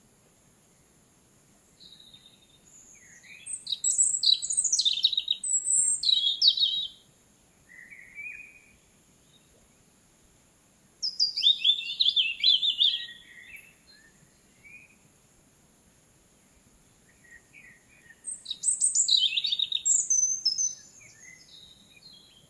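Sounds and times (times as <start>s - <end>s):
European robin singing: 1.7s - 7.1s, 7.7s - 9.6s, 11.0s - 15.0s, 16.9s - 22.4s.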